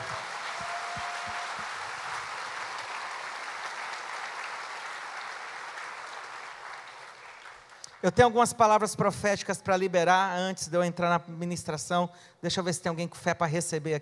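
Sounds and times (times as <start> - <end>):
audience applause: 0.0 - 8.0
speech: 8.0 - 13.9.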